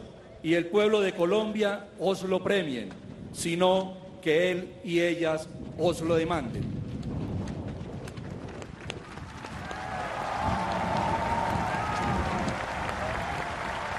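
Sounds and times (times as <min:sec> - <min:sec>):
speech: 0:00.4 - 0:06.8
large crowd applause at presidential swearing-in: 0:08.6 - 0:13.9.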